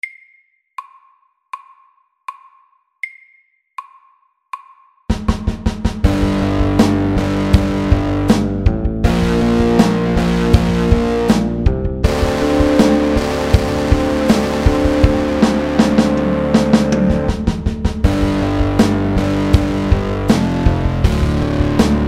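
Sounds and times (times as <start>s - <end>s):
pirate rock music: 5.1s - 22.0s.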